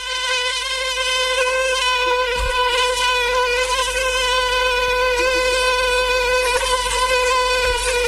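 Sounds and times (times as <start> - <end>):
mosquito buzzing: 0.0 - 8.0.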